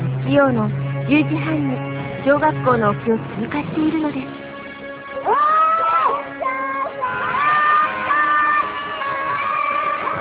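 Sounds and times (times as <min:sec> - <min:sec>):
speech: 0:00.3 - 0:04.4
schoolchildren cheering at a passing white ferry in Izumo, Shimane: 0:05.2 - 0:10.1.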